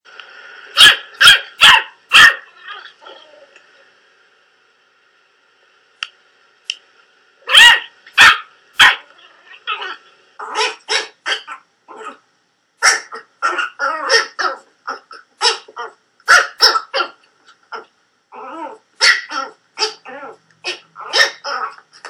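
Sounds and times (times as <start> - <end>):
puppies barking: 0.8 - 3.2, 7.5 - 12.1, 12.8 - 17.9, 19.0 - 21.8.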